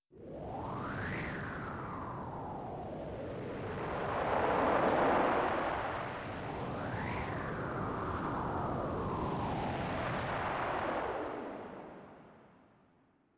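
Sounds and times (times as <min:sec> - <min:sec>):
wind: 0:00.1 - 0:13.3.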